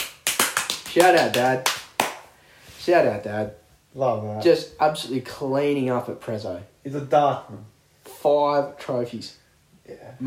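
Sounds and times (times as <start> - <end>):
hands clapping: 0.0 - 2.3
speech: 1.0 - 1.7, 2.8 - 10.2.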